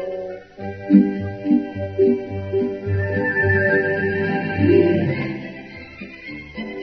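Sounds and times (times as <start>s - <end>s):
radio interval signal: 0.9s - 5.9s.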